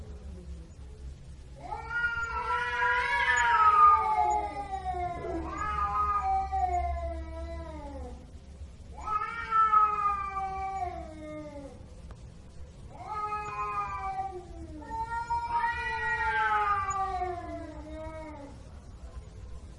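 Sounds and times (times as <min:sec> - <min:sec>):
cat meowing in long drawn-out calls: 0:01.6 - 0:08.2, 0:08.9 - 0:11.8, 0:12.9 - 0:18.5.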